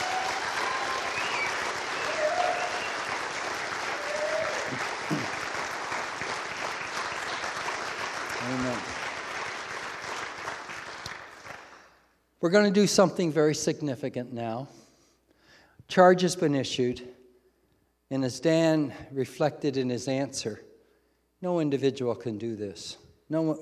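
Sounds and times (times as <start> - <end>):
audience applause: 0.0 - 11.9
speech: 12.4 - 14.8, 16.0 - 17.2, 18.1 - 20.7, 21.4 - 23.6.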